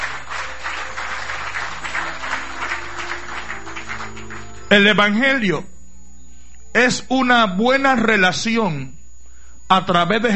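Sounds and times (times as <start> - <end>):
audience applause: 0.0 - 5.1
low hum: 0.0 - 7.8
speech: 4.7 - 5.7, 6.8 - 9.0, 9.7 - 10.3.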